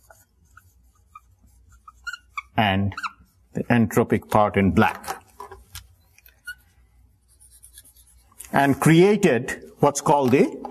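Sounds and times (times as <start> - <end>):
pen writing notes: 0.0 - 3.4, 5.5 - 8.6
soft squeaks: 0.5 - 3.4, 6.0 - 6.8
speech: 2.6 - 5.1, 8.6 - 10.6.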